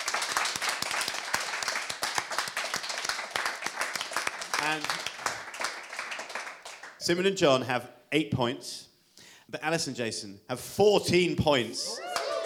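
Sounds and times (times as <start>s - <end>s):
audience round of applause: 0.0s - 7.0s, 12.0s - 12.4s
speech: 4.6s - 5.0s, 7.1s - 8.9s, 9.5s - 12.1s.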